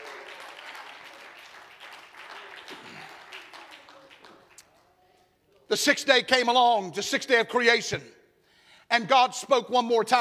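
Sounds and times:
audience clapping hands: 0:00.0 - 0:05.0
speech: 0:05.7 - 0:08.2, 0:08.9 - 0:10.1.

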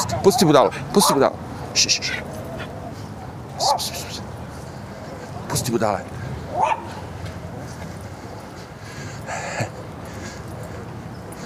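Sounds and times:
noise: 0:00.0 - 0:11.4
speech: 0:00.1 - 0:02.3, 0:05.6 - 0:06.8
small dog giving a short high yap: 0:03.6 - 0:04.0, 0:06.5 - 0:07.0.

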